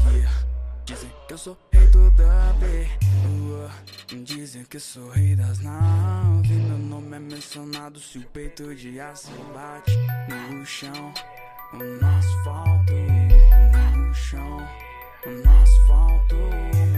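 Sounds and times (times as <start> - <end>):
dub bass: 0.0 - 1.0, 1.8 - 3.9, 5.2 - 7.1, 12.0 - 14.7, 15.5 - 16.9.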